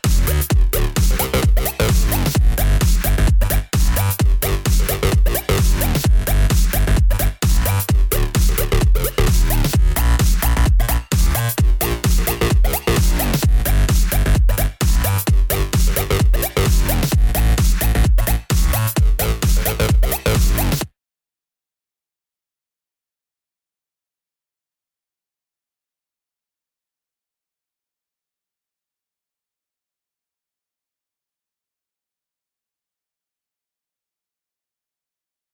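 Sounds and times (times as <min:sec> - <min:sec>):
vinyl scratching: 0:00.0 - 0:20.9
bass: 0:00.0 - 0:21.0.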